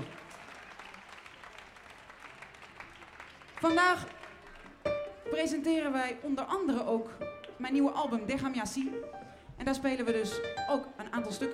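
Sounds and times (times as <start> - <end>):
audience applauding: 0.0 - 5.2
speech: 3.6 - 4.2, 5.3 - 11.5.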